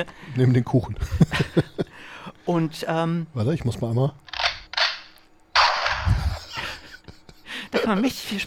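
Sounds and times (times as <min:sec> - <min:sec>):
speech: 0:00.0 - 0:04.3, 0:07.9 - 0:08.4
gunshot sound effect played from a soundboard: 0:05.6 - 0:06.2.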